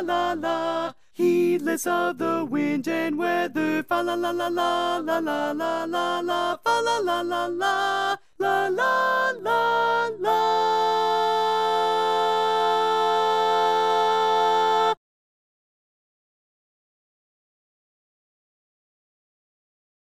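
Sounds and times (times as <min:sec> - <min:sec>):
tenor and grand chorus singing a carol: 0:00.0 - 0:15.0.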